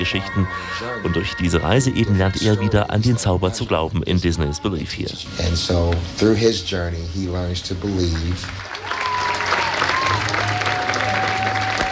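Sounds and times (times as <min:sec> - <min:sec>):
speech: 0:00.0 - 0:09.0
theater audience applause: 0:07.8 - 0:11.9.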